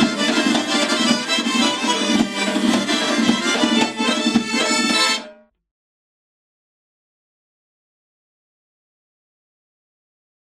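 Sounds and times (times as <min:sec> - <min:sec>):
Georgian folk dance music: 0:00.0 - 0:05.4.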